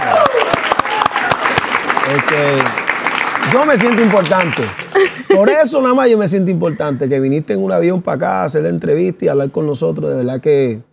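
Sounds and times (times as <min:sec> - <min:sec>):
applause: 0:00.0 - 0:05.1
speech: 0:02.1 - 0:02.8, 0:03.4 - 0:10.9
laughter: 0:04.9 - 0:05.7.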